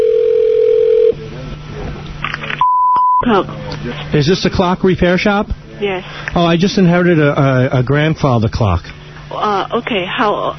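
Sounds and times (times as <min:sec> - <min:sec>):
telephone line tones as a call connects: 0:00.0 - 0:01.2
speech: 0:03.3 - 0:10.5.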